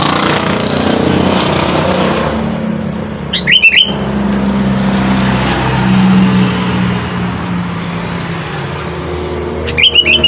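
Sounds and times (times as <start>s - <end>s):
continuous traffic rumble: 0.0s - 10.2s
sooty-headed bulbul singing: 3.3s - 4.0s, 9.7s - 10.2s.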